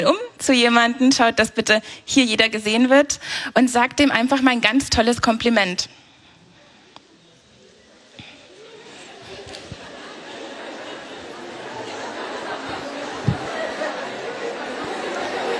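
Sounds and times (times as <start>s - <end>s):
speech: 0.0s - 6.0s
young people chatting and laughing at the Catholic Summer Festival: 6.4s - 15.5s.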